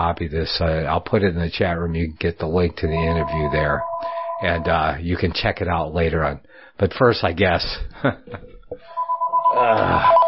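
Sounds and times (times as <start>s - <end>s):
speech: 0.0s - 10.2s
telephone ringing for an incoming prank call: 3.0s - 4.9s, 8.9s - 10.2s.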